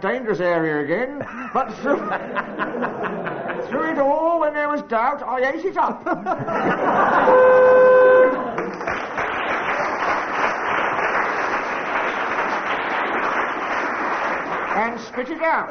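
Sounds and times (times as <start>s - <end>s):
speech: 0.0s - 8.0s, 14.8s - 15.6s
laughter: 1.2s - 4.1s, 5.8s - 8.8s
game show buzzer: 7.1s - 8.5s
audience applause: 8.2s - 15.6s.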